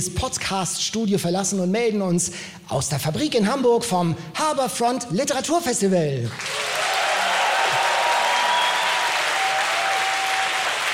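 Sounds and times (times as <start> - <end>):
speech: 0.0 - 6.8
sold-out audience applause in the Fabrik hall in Hamburg: 6.3 - 10.9.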